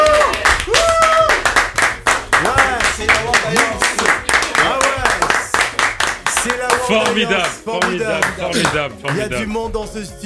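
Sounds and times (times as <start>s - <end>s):
audience applause: 0.0s - 8.9s
speech: 7.2s - 10.2s.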